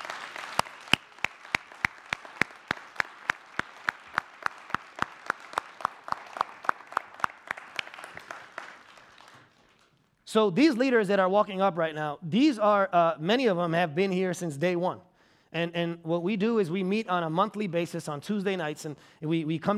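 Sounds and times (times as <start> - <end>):
audience round of applause: 0.0 - 9.9
crisp rhythmic clap: 0.0 - 10.2
speech: 10.3 - 19.7.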